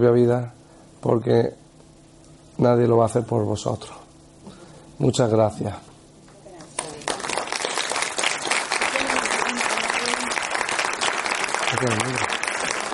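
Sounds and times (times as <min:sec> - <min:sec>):
speech: 0:00.0 - 0:01.6, 0:02.6 - 0:04.0, 0:05.0 - 0:05.9, 0:11.8 - 0:12.4
audience applause: 0:06.6 - 0:12.9.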